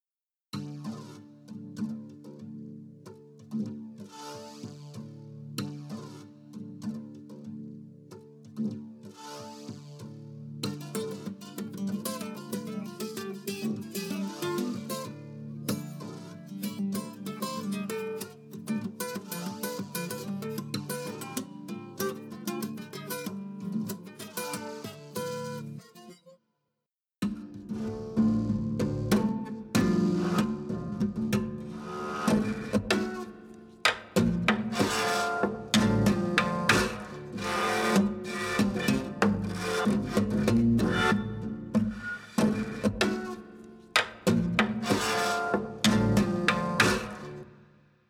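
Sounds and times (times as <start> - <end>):
rhythm guitar: 10.6 - 25.8, 27.2 - 47.6.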